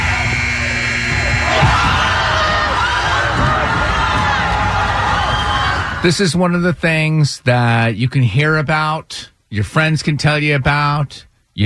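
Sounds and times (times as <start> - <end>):
gym crowd cheering after buzzer-beater: 0.0 - 6.2
speech: 6.0 - 11.6.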